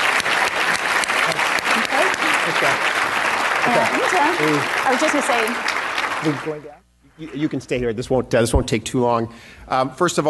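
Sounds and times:
audience applause: 0.0 - 7.6
speech: 3.6 - 10.2.

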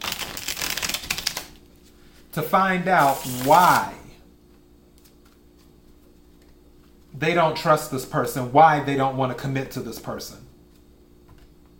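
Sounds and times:
tarot clarifying deck being shuffled: 0.0 - 1.6, 3.0 - 3.9
speech: 2.3 - 4.0, 7.2 - 10.4.

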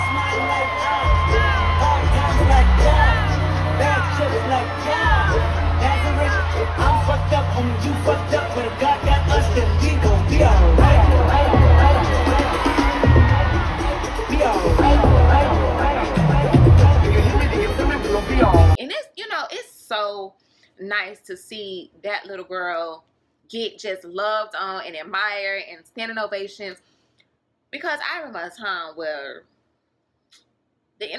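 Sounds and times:
deep bass notes from music: 0.0 - 18.8
huge concert crowd screaming and cheering: 0.0 - 18.8
speech: 21.0 - 26.9, 27.7 - 29.5, 31.0 - 31.1.

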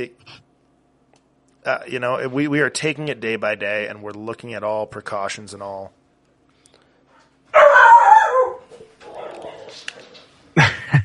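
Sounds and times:
speech: 0.0 - 0.4, 1.6 - 6.0
dog barking: 7.6 - 9.7
laughter: 10.6 - 11.0.

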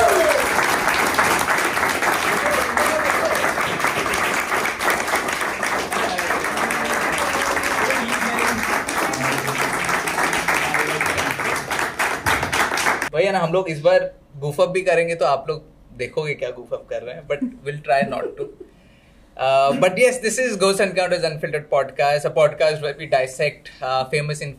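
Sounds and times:
cheers: 0.0 - 13.0
crowd applauding: 0.0 - 13.1
speech: 13.5 - 18.6, 19.4 - 24.5.

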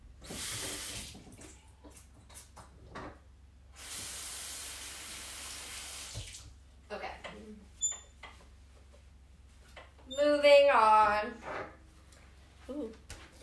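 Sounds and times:
water running from a sink tap as hands are washed: 3.8 - 6.5
speech: 10.4 - 11.4.

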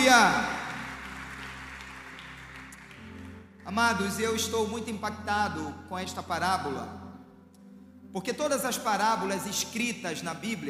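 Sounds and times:
audience applauding: 0.0 - 3.6
speech: 3.7 - 7.0, 8.1 - 10.6.

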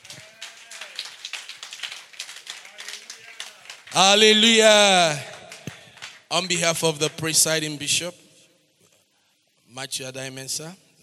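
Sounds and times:
audience clapping: 0.0 - 7.7
speech: 3.9 - 5.3, 6.3 - 8.2, 9.8 - 10.8.

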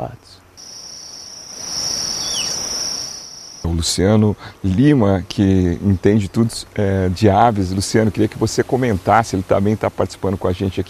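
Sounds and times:
buzzing insect drone: 0.6 - 3.7
tapir whistle: 1.6 - 3.6
speech: 3.6 - 10.8.

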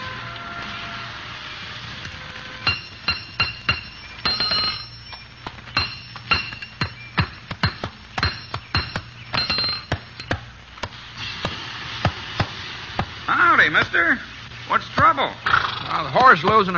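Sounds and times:
blacksmith hammering metal on an anvil: 2.7 - 10.5
speech: 13.7 - 16.7.

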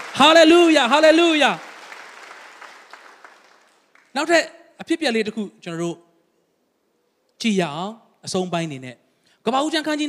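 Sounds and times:
church congregation clapping hands in praise during a Sunday sermon: 0.0 - 4.4
speech: 0.2 - 1.7, 4.2 - 6.0, 7.4 - 10.0.

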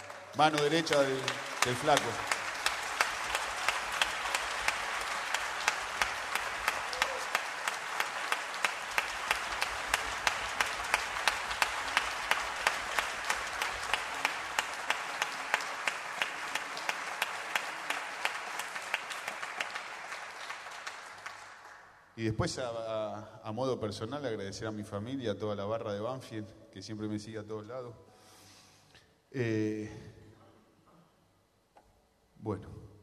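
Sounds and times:
audience applause: 0.0 - 22.0
speech: 0.4 - 2.3, 22.2 - 28.1, 29.3 - 30.1, 32.5 - 32.7.

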